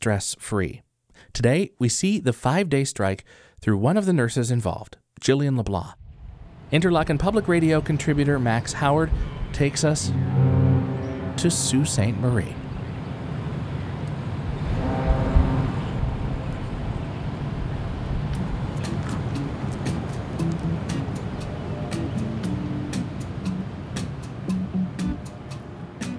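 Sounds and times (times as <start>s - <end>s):
speech: 0.0s - 6.0s, 6.7s - 10.6s, 11.4s - 12.6s
freighter foghorn in the locks at Sault Ste. Marie: 7.6s - 26.1s.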